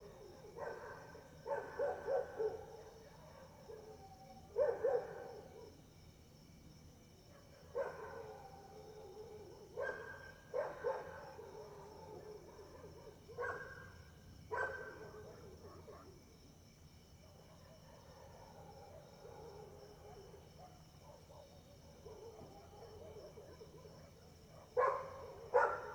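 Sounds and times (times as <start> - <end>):
dogs barking at night: 0.2 - 5.7, 7.3 - 16.2, 17.3 - 25.9.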